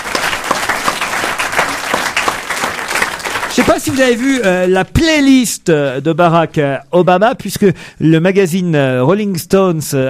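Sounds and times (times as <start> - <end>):
audience applause: 0.0 - 4.8
speech: 3.6 - 10.0.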